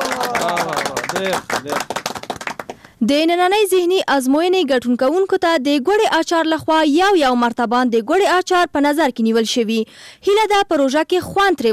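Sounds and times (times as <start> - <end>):
audience clapping for a correct answer in a quiz segment: 0.0 - 3.0
speech: 1.2 - 2.0, 3.0 - 11.7.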